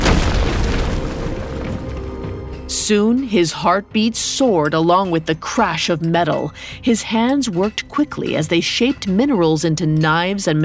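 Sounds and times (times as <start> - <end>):
rock crashing from cave walls: 0.0 - 2.4
speech: 2.8 - 10.6.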